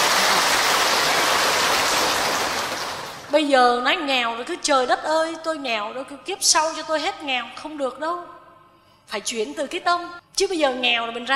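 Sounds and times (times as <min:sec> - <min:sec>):
audience applause: 0:00.0 - 0:03.3
speech: 0:03.3 - 0:08.4, 0:09.1 - 0:11.3.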